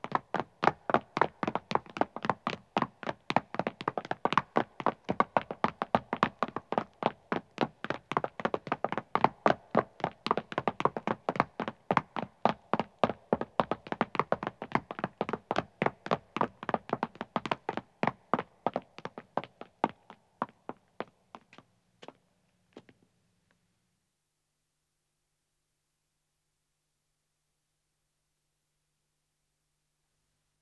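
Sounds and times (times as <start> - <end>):
two men running footsteps on stone: 0.0 - 22.2.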